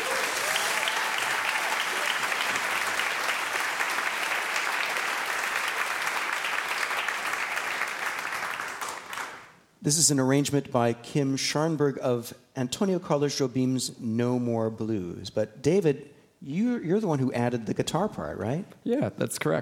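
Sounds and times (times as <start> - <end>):
audience applause welcoming four teenage trombonists and a guitarist from Chicago: 0.0 - 9.6
speech: 9.8 - 19.6.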